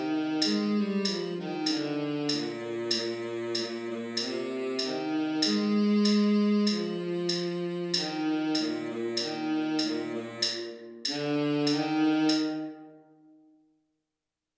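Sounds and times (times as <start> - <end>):
baritone saxophone: 0.0 - 13.0.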